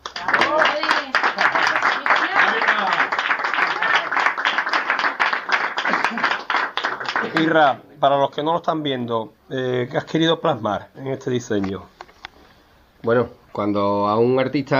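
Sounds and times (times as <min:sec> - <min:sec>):
audience applause: 0:00.0 - 0:07.6
speech: 0:07.4 - 0:11.9, 0:13.0 - 0:14.7.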